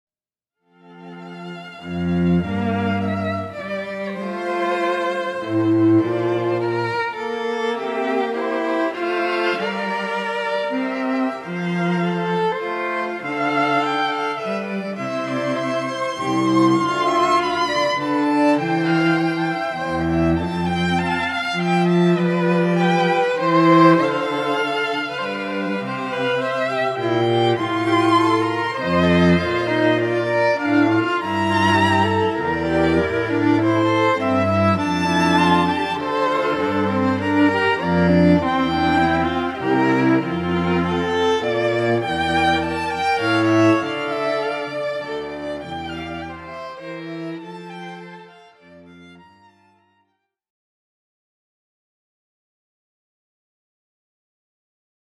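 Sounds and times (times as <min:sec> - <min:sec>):
violin concerto largo movement: 0:00.7 - 0:50.0.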